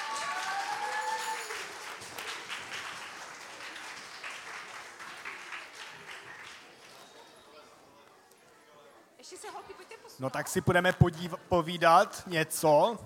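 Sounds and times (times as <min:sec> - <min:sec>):
audience applause: 0:00.0 - 0:07.0
speech: 0:09.3 - 0:13.0.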